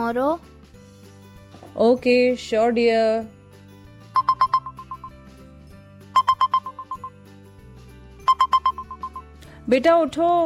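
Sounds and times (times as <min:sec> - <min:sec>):
speech: 0:00.0 - 0:00.5, 0:01.8 - 0:03.4, 0:09.7 - 0:10.4
electronic alarm beeps: 0:04.2 - 0:05.2, 0:06.2 - 0:07.1, 0:08.2 - 0:09.2.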